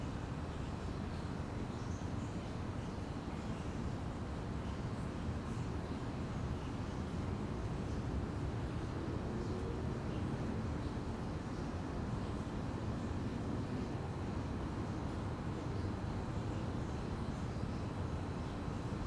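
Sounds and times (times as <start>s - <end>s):
city hum: 0.0s - 19.0s
slight water streak from sewer on quiet street: 0.0s - 19.0s.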